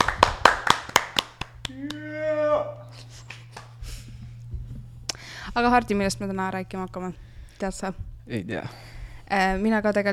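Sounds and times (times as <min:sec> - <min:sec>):
studio audience clapping: 0:00.0 - 0:02.1, 0:03.2 - 0:03.8
speech: 0:05.6 - 0:10.1.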